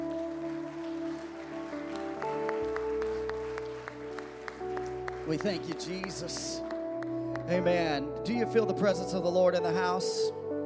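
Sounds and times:
audience hand clapping: 0.0 - 7.9
speech: 5.3 - 6.7, 7.5 - 10.4.

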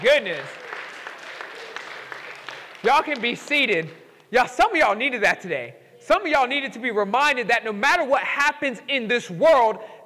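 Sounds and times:
speech: 0.0 - 0.6, 2.8 - 10.0
audience clapping: 0.0 - 4.3.

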